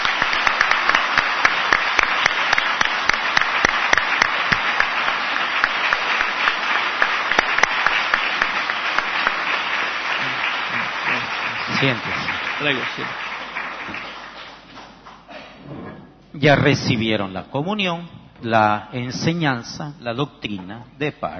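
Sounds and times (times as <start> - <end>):
audience applause: 0.0 - 15.3
speech: 11.8 - 13.3, 16.4 - 21.3.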